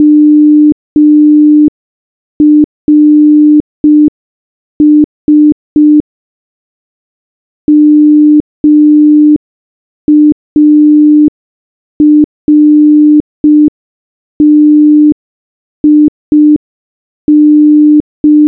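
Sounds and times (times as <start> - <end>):
morse code beeps: 0.0 - 1.7, 2.4 - 4.1, 4.8 - 6.0, 7.7 - 9.4, 10.1 - 11.3, 12.0 - 13.7, 14.4 - 15.2, 15.8 - 16.6, 17.3 - 18.4.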